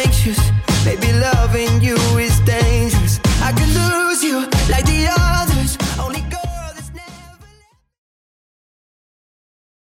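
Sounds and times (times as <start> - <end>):
Top40 pop music at 94 bpm: 0.0 - 7.9.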